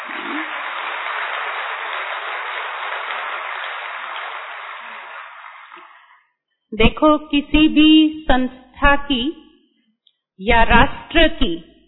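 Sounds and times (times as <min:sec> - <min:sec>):
large crowd clapping: 0:00.0 - 0:06.3
speech: 0:06.7 - 0:09.4, 0:10.4 - 0:11.7.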